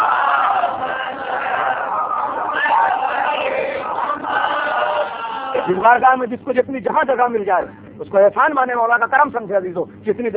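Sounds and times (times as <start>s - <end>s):
seated congregation chanting salawat: 0.0s - 5.8s
speech: 5.7s - 10.3s.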